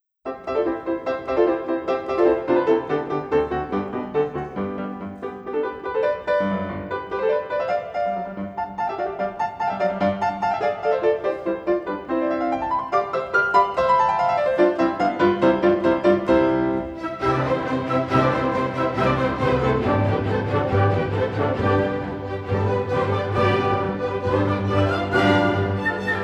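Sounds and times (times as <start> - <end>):
piano concerto rondo: 0.0 - 26.2.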